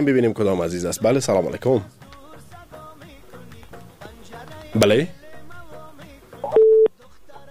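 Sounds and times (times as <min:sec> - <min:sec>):
speech: 0:00.0 - 0:02.1, 0:04.7 - 0:05.2
telephone busy tone as a call disconnects: 0:06.4 - 0:06.9.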